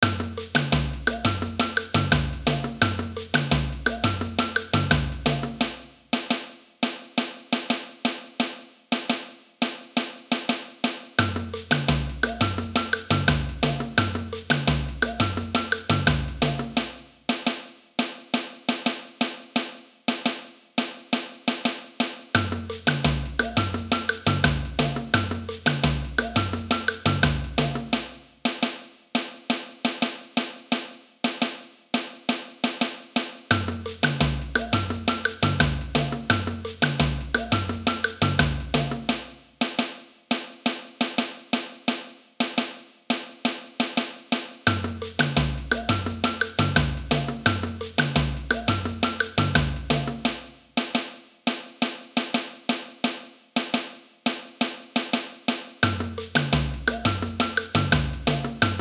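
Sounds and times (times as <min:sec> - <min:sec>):
samba music: 0:00.0 - 0:06.4, 0:11.2 - 0:17.4, 0:22.4 - 0:28.3, 0:33.5 - 0:39.8, 0:44.7 - 0:50.6, 0:55.8 - 0:58.8
caixa snare drum: 0:00.0 - 0:58.8.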